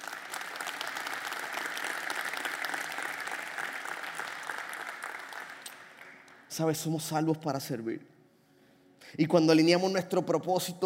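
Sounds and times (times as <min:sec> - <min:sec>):
audience applause: 0:00.0 - 0:06.5
speech: 0:06.6 - 0:08.1, 0:09.1 - 0:10.8.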